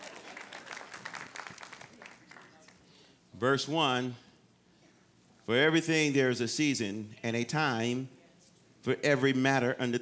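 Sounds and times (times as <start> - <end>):
audience clapping: 0.0 - 3.0
speech: 3.4 - 4.2, 5.5 - 8.2, 8.8 - 10.0.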